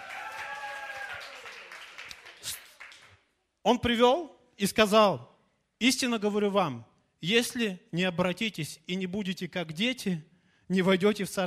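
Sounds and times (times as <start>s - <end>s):
audience applause: 0.0s - 3.2s
speech: 3.6s - 11.4s.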